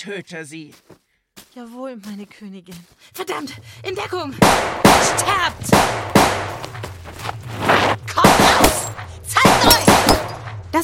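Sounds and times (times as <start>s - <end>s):
speech: 0.0s - 1.0s, 1.6s - 8.0s
gunfire from a woman shooting in an audio drama: 4.4s - 6.8s, 7.6s - 10.5s.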